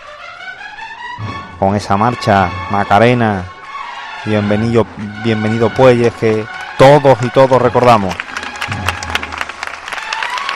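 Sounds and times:
speech: 1.6 - 3.6, 4.2 - 8.8
crowd applause: 5.2 - 10.5.

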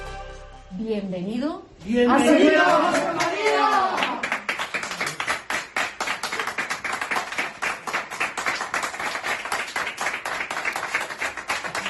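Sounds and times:
speech: 0.8 - 4.0
ovation with applause: 2.4 - 11.8.

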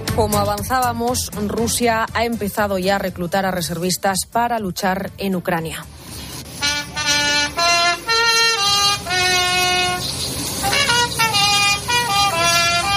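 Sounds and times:
speech: 0.2 - 6.0
trumpet played as bus departs: 6.4 - 12.9.

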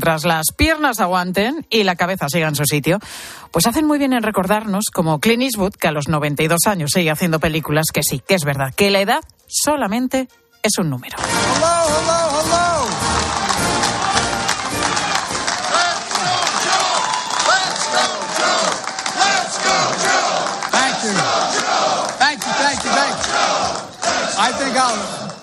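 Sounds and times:
speech: 0.0 - 12.7
applause: 11.2 - 25.4
crowd cheering: 11.2 - 25.4.

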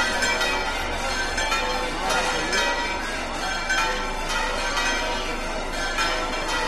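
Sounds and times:
murmur of voices: 0.0 - 3.7
church bells pealing: 0.0 - 6.6.

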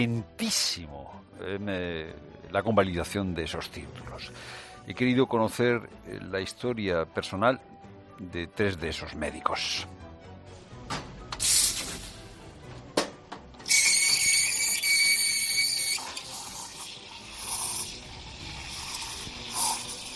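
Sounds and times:
speech: 0.0 - 10.0
coffee machine steam hiss at the restaurant Casa Jaguar: 11.4 - 12.3, 13.7 - 20.1.

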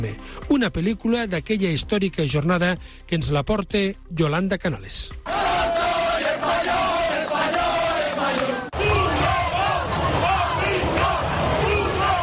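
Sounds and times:
speech: 0.0 - 5.4
large demonstration crowd chanting and shouting: 5.2 - 12.2.

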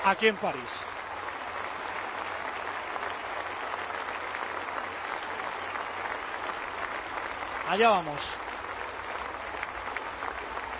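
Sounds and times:
speech: 0.0 - 1.0, 7.7 - 8.4
packed tennis stadium crowd applause in Paris for Serena Williams: 0.0 - 10.7.

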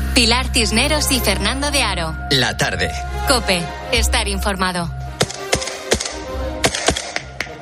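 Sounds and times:
speech: 0.2 - 5.0
gunshots from the war in Ukraine: 5.2 - 7.3.

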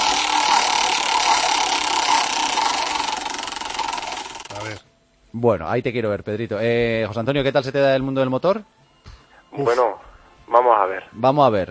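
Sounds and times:
game show roulette wheel spinning: 0.0 - 4.8
speech: 5.4 - 8.8, 9.6 - 11.7.

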